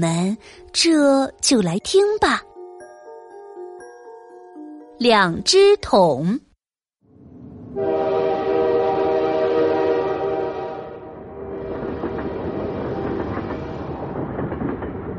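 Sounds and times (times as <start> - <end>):
speech: 0.0 - 2.5, 5.0 - 6.4
speeding train horn blast: 7.7 - 12.6
speeding train wheels rattling on track: 11.2 - 15.1.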